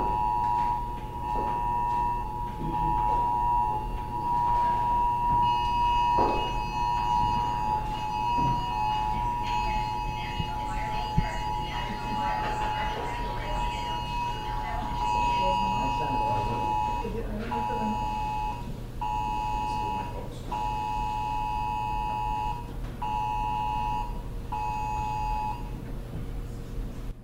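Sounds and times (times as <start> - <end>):
voices murmuring: 0.0 - 20.9
wireless emergency alert test tone: 0.0 - 25.8.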